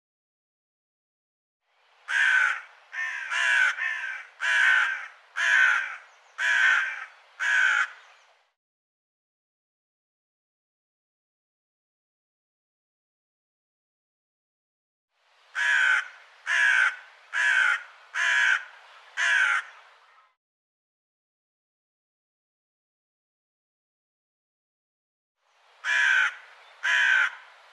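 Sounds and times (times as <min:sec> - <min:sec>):
bird giving harsh caws: 0:02.1 - 0:08.2, 0:15.5 - 0:20.4, 0:25.8 - 0:27.6.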